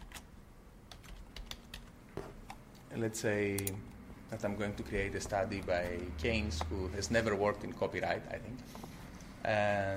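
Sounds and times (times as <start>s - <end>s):
typing on a computer keyboard: 0.9s - 2.0s
speech: 2.9s - 9.9s.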